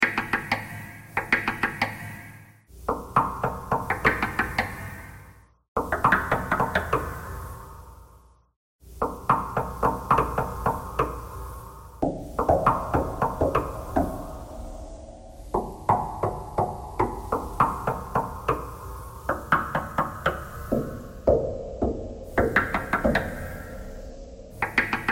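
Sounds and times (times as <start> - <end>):
knocking thread noise: 0.0 - 2.2, 2.8 - 4.9, 5.8 - 7.2, 8.9 - 11.4, 12.0 - 14.3, 15.5 - 23.6, 24.6 - 25.1.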